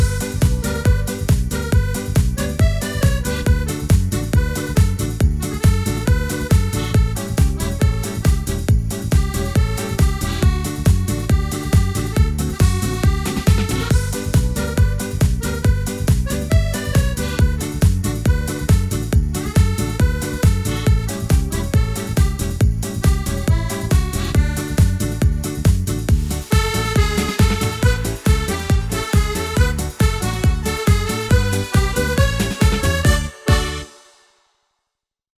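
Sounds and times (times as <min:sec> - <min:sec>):
Portuguese march music: 0:00.0 - 0:34.3.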